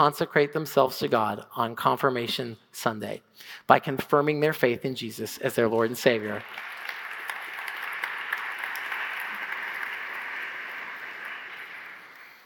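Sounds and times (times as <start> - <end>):
speech: 0.0 - 6.7
applause: 5.9 - 12.4.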